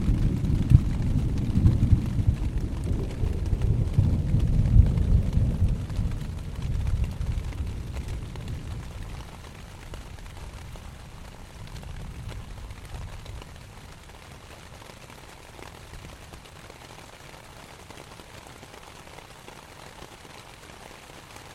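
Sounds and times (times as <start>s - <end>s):
thunder with reverb in a valley: 0.0s - 10.7s
rain on a tent: 0.0s - 21.5s.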